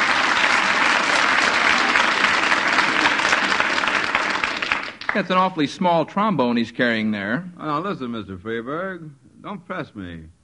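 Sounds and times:
audience applauding: 0.0 - 5.5
speech: 5.2 - 10.4.

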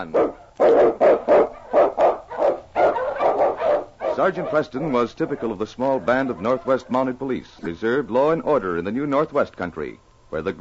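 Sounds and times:
speech: 0.0 - 1.1, 4.2 - 10.6
husky sled dog barking: 0.0 - 7.2.

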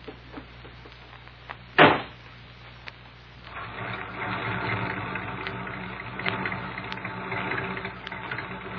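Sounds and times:
sharp thump: 1.8 - 2.2
car motor starting and warming up: 3.5 - 8.7.

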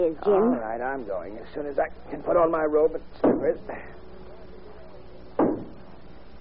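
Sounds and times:
speech: 0.0 - 4.1
knocking at a door: 5.4 - 5.8.

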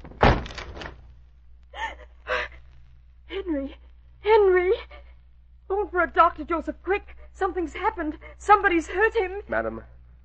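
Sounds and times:
door being forced open: 0.0 - 1.0
speech: 3.4 - 4.5, 6.0 - 9.9.

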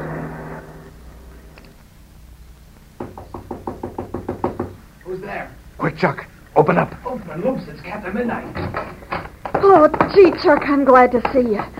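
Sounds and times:
knocking on a door: 3.0 - 4.8, 8.5 - 11.7
speech: 5.1 - 9.0, 9.6 - 11.7.

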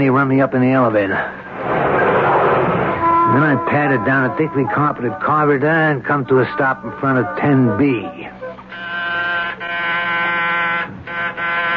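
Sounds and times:
speech: 0.0 - 2.1, 3.3 - 8.4
low hum: 0.0 - 11.7
harsh loud electric door buzzer: 8.6 - 11.7.

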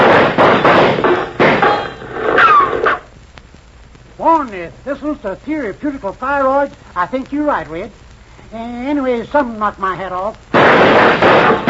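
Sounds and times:
gunshots: 0.0 - 3.1, 10.5 - 11.6
speech: 4.4 - 11.6.

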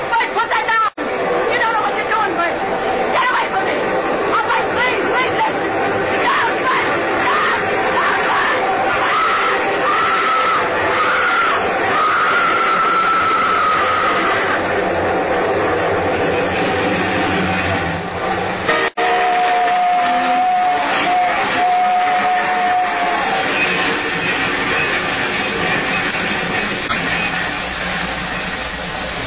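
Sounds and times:
long loud train roaring past: 0.0 - 29.2
train whistle: 6.1 - 17.9, 18.6 - 28.0.

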